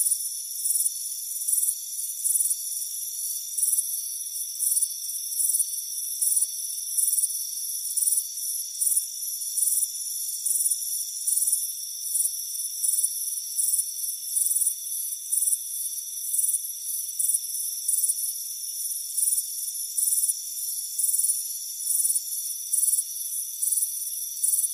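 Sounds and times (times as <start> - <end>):
cricket chirping: 0.0 - 24.7.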